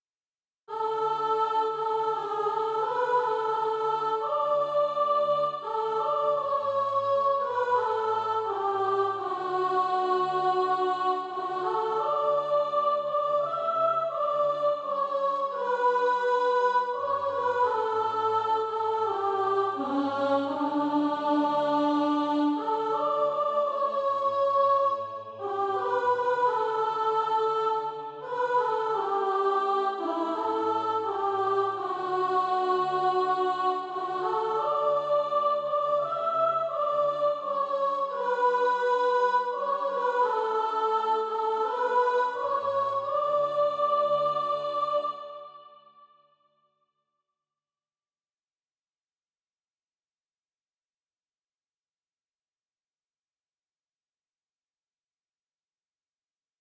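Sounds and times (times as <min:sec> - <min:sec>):
soprano singing practice music: 0:00.7 - 0:45.6.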